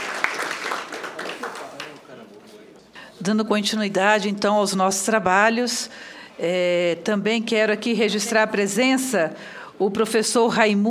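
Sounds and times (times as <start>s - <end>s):
crowd applause: 0.0s - 2.0s
speech: 3.2s - 10.8s.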